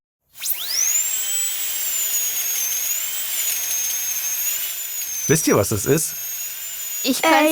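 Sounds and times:
dentist's drill whirring: 0.3 - 7.5
speech: 5.3 - 6.3, 7.0 - 7.5.

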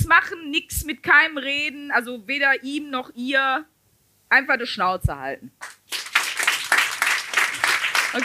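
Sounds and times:
speech: 0.1 - 3.7, 4.3 - 6.0
audience clapping: 5.6 - 8.2.

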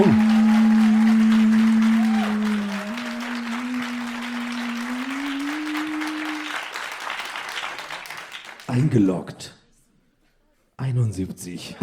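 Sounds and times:
crowd applause: 0.0 - 8.9
speech: 8.9 - 9.5, 11.2 - 11.8.

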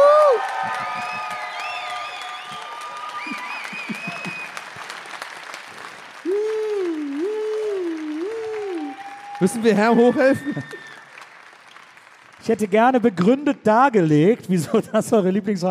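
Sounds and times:
audience cheering: 0.0 - 11.4
audience applause: 0.0 - 14.4
speech: 9.4 - 10.9, 12.5 - 15.6.

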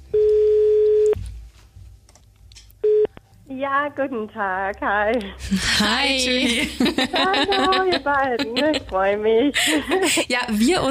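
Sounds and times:
ringback tone of an outgoing telephone call: 0.2 - 1.2, 2.8 - 3.1
speech: 3.6 - 10.8
laughter: 5.5 - 10.3.

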